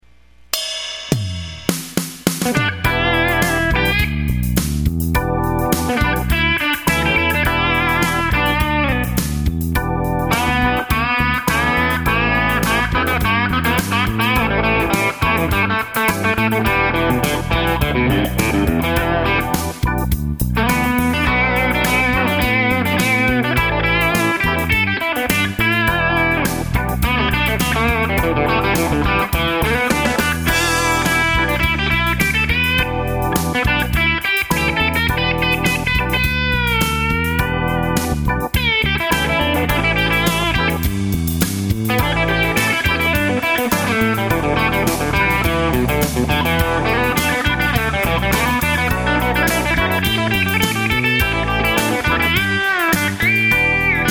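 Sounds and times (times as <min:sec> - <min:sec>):
blues music: 0:00.6 - 0:54.1.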